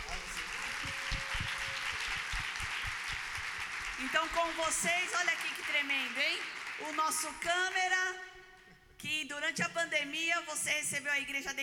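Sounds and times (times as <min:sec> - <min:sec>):
audience applause: 0:00.0 - 0:07.3
speech: 0:04.0 - 0:08.3, 0:09.0 - 0:11.6.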